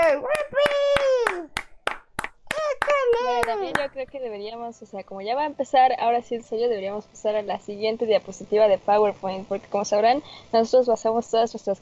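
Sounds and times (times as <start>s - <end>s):
applause: 0.0s - 4.0s
speech: 3.8s - 11.8s.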